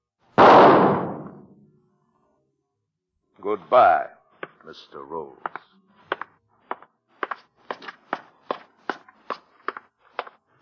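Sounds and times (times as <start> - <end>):
gunshot: 0.4 - 1.6
speech: 3.4 - 5.7.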